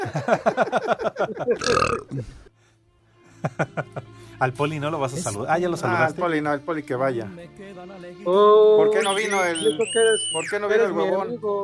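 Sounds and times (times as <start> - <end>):
laughter: 0.0 - 2.3, 3.3 - 4.1
speech: 0.0 - 2.5, 3.4 - 11.6
voice imitating a long loud croaking burp: 1.6 - 2.4.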